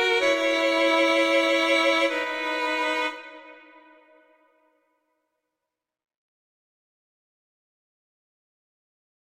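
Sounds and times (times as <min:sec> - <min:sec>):
slow classical piece: 0:00.0 - 0:04.5.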